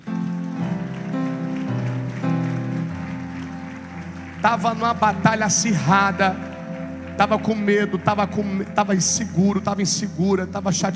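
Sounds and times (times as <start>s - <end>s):
church audience applause: 0.0s - 10.9s
speech: 4.4s - 6.5s, 7.2s - 10.9s.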